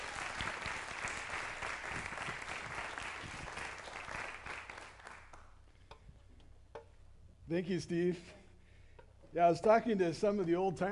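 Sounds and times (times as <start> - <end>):
applause: 0.0 - 5.6
speech: 7.5 - 8.4, 9.3 - 10.9.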